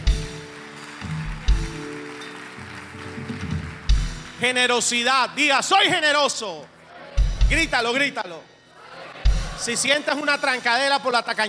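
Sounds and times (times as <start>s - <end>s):
audience applause: 0.0s - 5.1s
speech: 4.4s - 6.8s, 7.5s - 8.5s, 9.6s - 11.4s.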